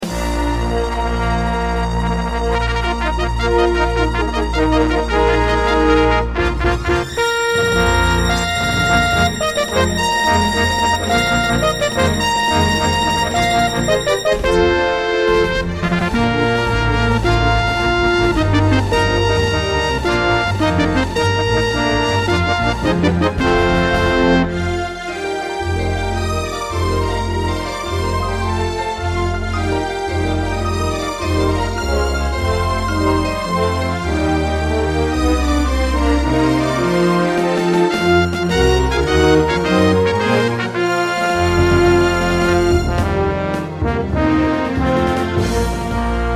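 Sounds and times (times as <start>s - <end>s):
intro music: 0.0s - 46.3s.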